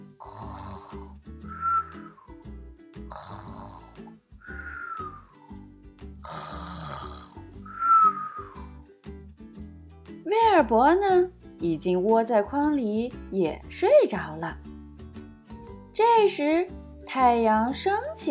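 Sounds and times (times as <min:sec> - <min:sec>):
snoring: 0:00.0 - 0:01.2, 0:03.1 - 0:04.2, 0:06.2 - 0:07.6
speech: 0:10.3 - 0:14.7, 0:16.0 - 0:18.2.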